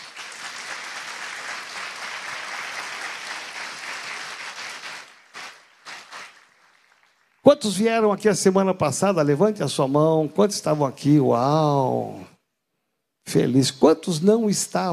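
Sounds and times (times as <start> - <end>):
audience applause: 0.0 - 7.7
speech: 7.4 - 12.3, 13.3 - 14.9.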